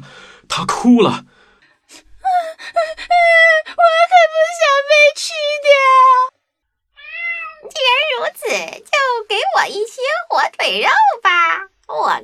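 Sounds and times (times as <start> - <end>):
speech: 0.5 - 2.1, 2.7 - 6.3, 7.8 - 12.2
thin black cat meowing: 7.0 - 7.8.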